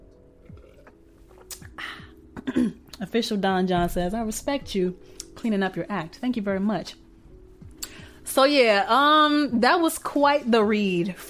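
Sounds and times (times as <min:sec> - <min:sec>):
person sipping water: 0:00.0 - 0:02.4
speech: 0:02.6 - 0:07.0, 0:08.3 - 0:11.2.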